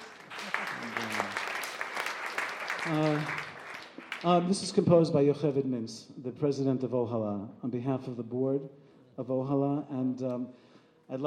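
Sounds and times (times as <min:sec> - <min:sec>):
round of applause: 0:00.0 - 0:04.6
speech: 0:02.8 - 0:03.4, 0:04.2 - 0:11.2.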